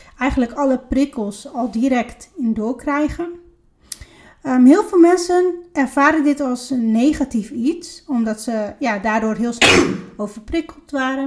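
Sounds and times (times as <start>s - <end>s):
speech: 0.2s - 3.4s, 4.4s - 11.2s
sneeze: 9.6s - 10.2s.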